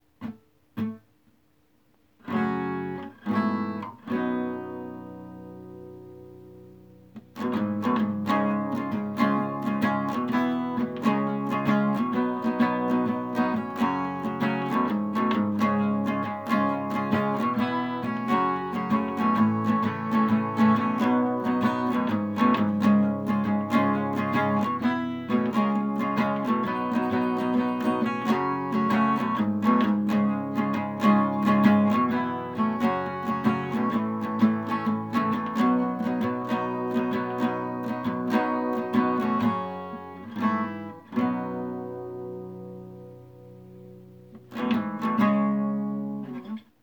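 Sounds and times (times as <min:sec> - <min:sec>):
acoustic music: 0:00.0 - 0:46.8.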